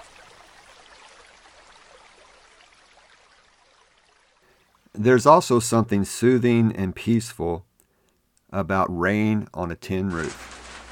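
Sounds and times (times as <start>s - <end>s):
stream water flowing: 0.0s - 4.9s
speech: 5.0s - 7.7s, 8.5s - 10.5s.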